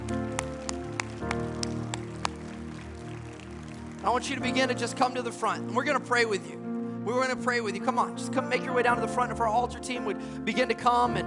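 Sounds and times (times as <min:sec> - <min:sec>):
audience clapping: 0:00.0 - 0:05.6
sustained keyboard chords: 0:00.0 - 0:11.2
speech: 0:04.0 - 0:11.2.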